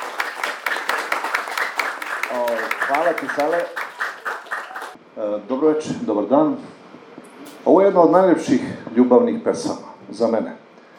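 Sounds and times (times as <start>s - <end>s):
rhythmic audience applause welcoming an actor of the Kragujevac theatre: 0.0s - 5.0s
speech: 2.3s - 3.8s, 5.2s - 6.8s, 7.6s - 10.6s.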